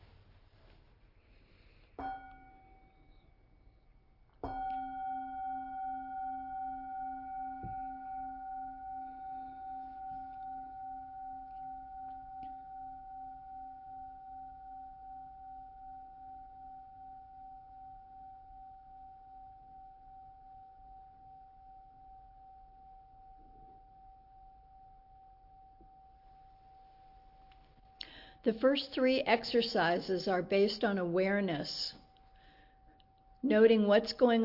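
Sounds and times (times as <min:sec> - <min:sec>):
meditation bell ringing: 0:02.0 - 0:03.4, 0:04.4 - 0:27.2
speech: 0:28.4 - 0:32.0, 0:33.4 - 0:34.4.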